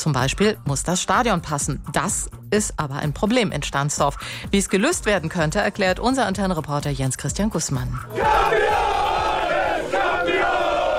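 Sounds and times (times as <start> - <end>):
speech: 0.0 - 8.9
football fans cheering championship: 8.1 - 10.9.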